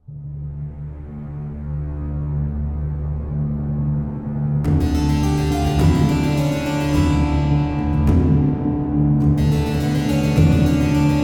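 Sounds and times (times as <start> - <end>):
string instrument: 0.0 - 11.2.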